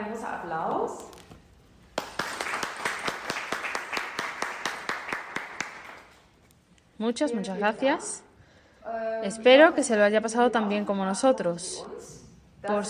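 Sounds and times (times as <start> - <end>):
speech: 0.2 - 1.2, 7.0 - 12.8
crowd applauding: 2.0 - 6.2.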